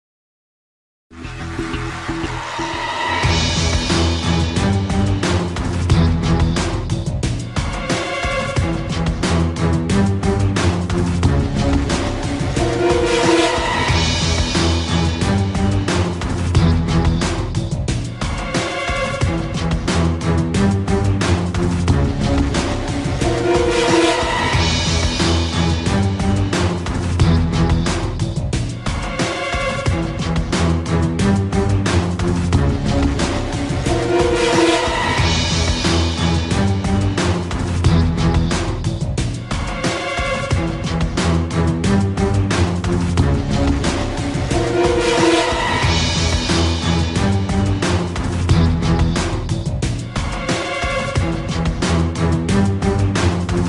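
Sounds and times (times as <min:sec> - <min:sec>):
theme music: 0:01.1 - 0:53.6.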